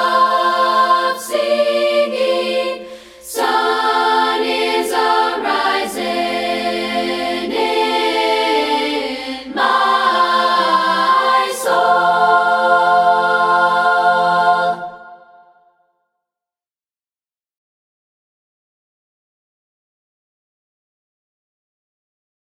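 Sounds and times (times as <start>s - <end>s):
a cappella singing: 0.0s - 15.7s.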